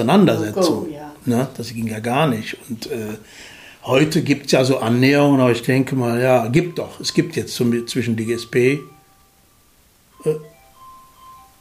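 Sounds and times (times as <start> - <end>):
speech: 0.0 - 8.9, 10.2 - 10.5
mobile phone ringing in jacket pocket: 6.6 - 9.4, 10.1 - 11.6.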